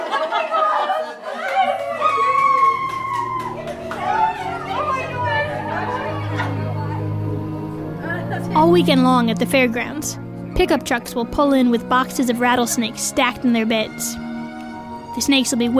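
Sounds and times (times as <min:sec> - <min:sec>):
bursts of laughter: 0:00.0 - 0:02.3
children's high voices: 0:00.2 - 0:14.2, 0:15.2 - 0:15.7
packed overflow crowd chatter: 0:00.7 - 0:09.7
speech: 0:08.7 - 0:14.3, 0:15.2 - 0:15.7.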